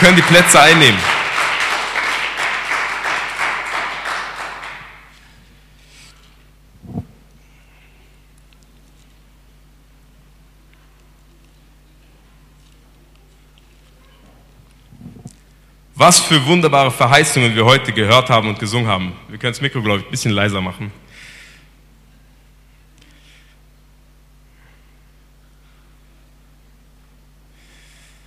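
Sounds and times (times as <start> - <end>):
speech: 0.0 - 1.2, 16.0 - 21.0
audience applause: 0.0 - 5.2.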